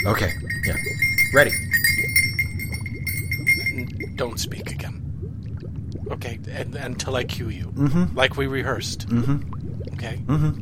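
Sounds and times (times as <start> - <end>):
speech: 0.0 - 1.7, 3.8 - 5.0, 6.1 - 10.6
bell harp chiming: 0.0 - 4.2.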